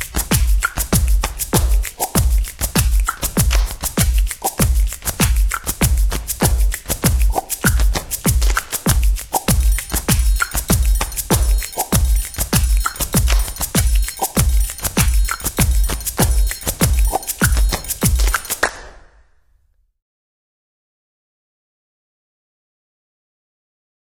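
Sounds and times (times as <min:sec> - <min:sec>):
samba music: 0:00.0 - 0:18.6.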